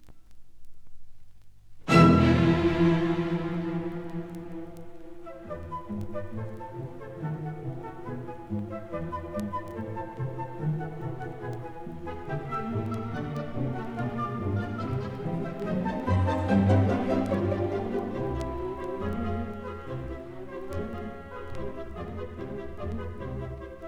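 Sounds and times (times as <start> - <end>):
orchestra playing a petite suite: 1.9 - 9.0, 10.0 - 23.8.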